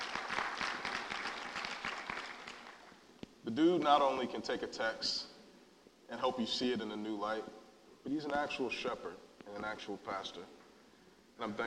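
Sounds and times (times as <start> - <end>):
audience applause: 0.0 - 2.9
speech: 3.4 - 5.3, 6.1 - 10.6, 11.4 - 11.6.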